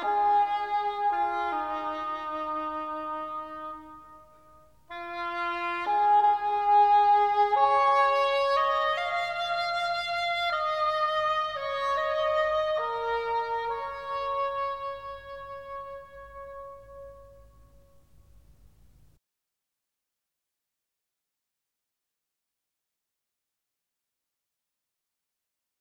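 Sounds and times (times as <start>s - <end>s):
English horn: 0.0s - 18.5s.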